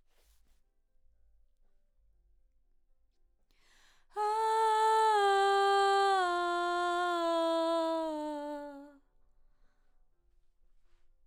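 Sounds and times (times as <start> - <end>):
background vocals: 4.2 - 9.0.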